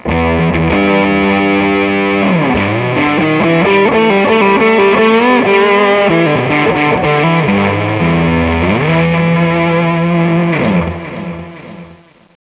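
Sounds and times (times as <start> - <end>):
guitar: 0.0 - 12.4.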